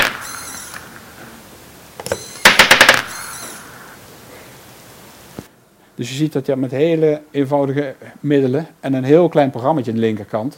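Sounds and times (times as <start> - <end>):
servo motor turning to release ball: 0.2 - 0.9, 3.1 - 3.6
speech: 6.0 - 10.5.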